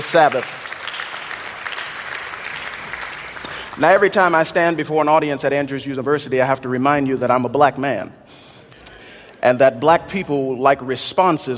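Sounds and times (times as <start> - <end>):
speech: 0.0 - 0.7, 3.8 - 8.2, 9.4 - 11.5
audience applause: 0.0 - 4.3.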